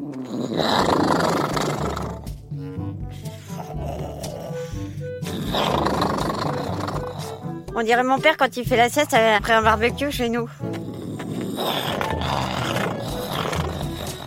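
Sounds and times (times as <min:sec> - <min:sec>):
dinosaur snoring very loudly: 0:00.0 - 0:07.6, 0:10.6 - 0:14.2
speech: 0:07.8 - 0:10.7.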